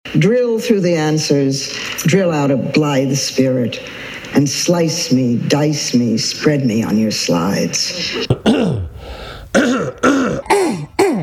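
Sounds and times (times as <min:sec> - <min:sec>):
speech: 0:00.2 - 0:08.8
person clearing throat to dislodge mucus: 0:08.0 - 0:11.2.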